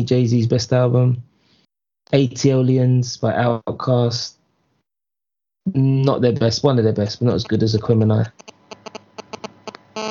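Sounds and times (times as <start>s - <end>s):
speech: 0.0s - 1.3s, 2.1s - 4.4s, 5.6s - 8.5s
phone ringing: 8.4s - 10.1s.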